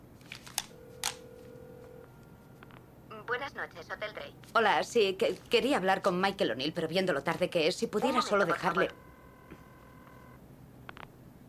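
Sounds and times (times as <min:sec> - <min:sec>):
woman dialing a telephone number: 0:00.5 - 0:02.3, 0:08.1 - 0:10.4
speech: 0:03.4 - 0:09.0.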